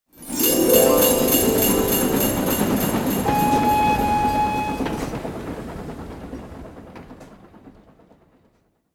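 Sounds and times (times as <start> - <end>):
holiday podium sound effect: 0.1 - 4.6.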